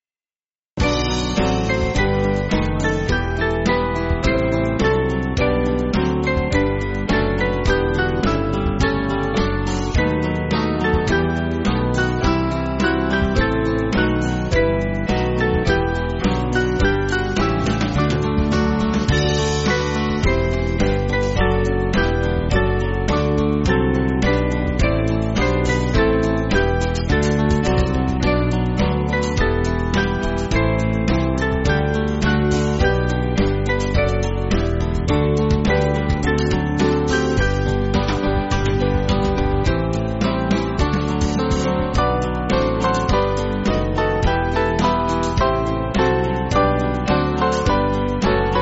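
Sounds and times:
backing music for churches: 0:00.8 - 0:48.6.

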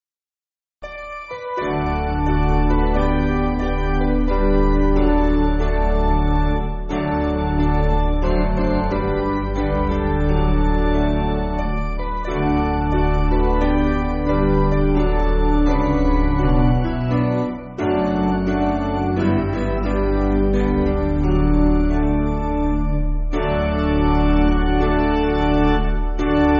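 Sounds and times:
spiritual on piano: 0:00.8 - 0:26.5.

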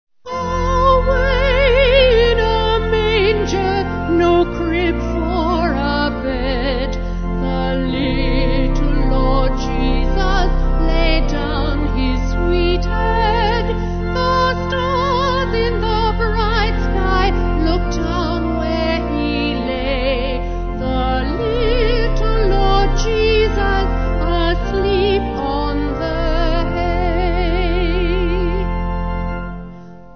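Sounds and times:
vocal organ: 0:00.3 - 0:30.1.

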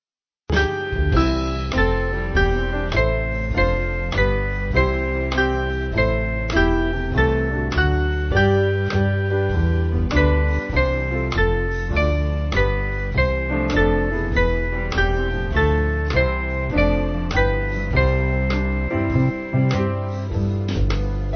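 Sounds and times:
church band backing music: 0:00.6 - 0:21.3.

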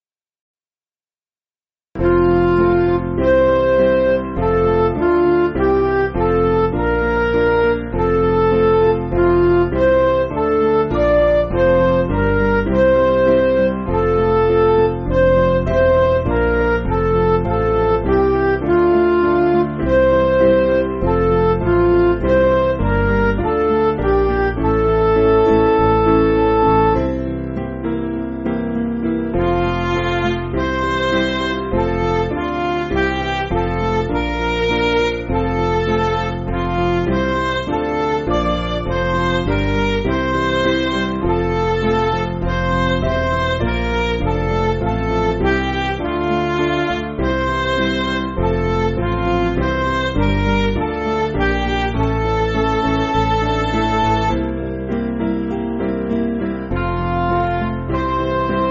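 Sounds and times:
MIDI music: 0:02.0 - 0:58.6.

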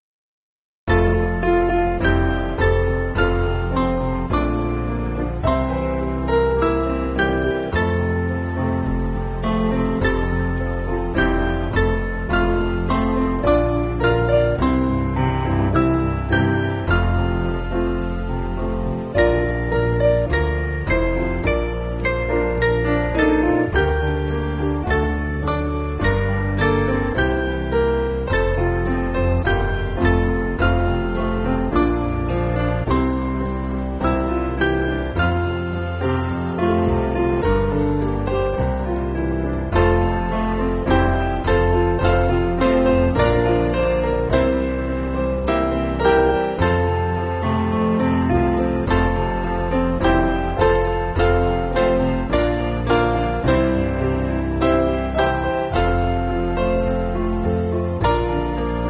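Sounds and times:
church piano backing: 0:00.9 - 0:58.8.

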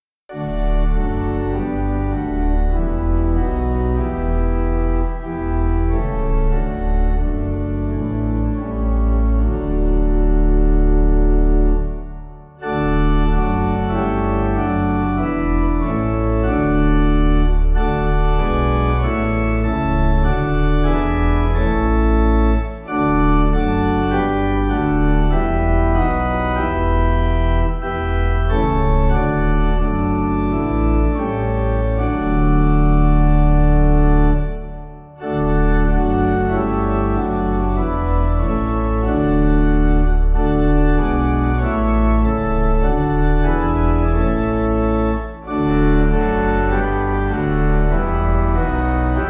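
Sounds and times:
pipe melody: 0:00.3 - 0:49.2.

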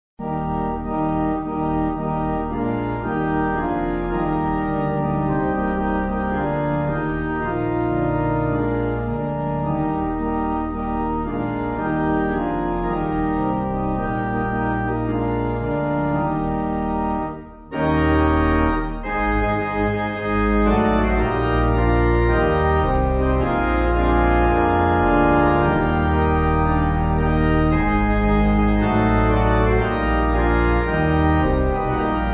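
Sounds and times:
pipe organ: 0:00.2 - 0:32.3.

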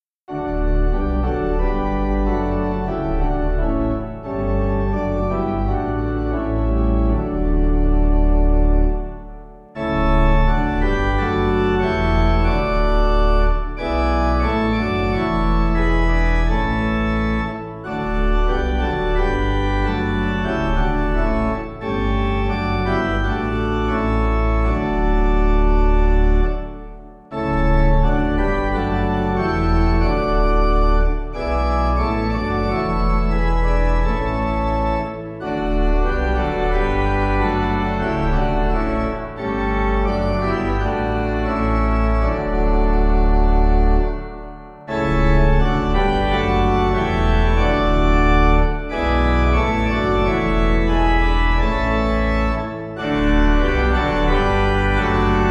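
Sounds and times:
pipe organ playing in Durham: 0:00.3 - 0:55.4.

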